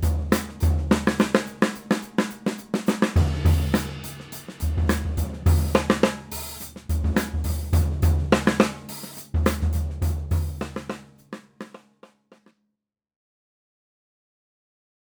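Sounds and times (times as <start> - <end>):
5x14 drum: 0.0 - 12.4.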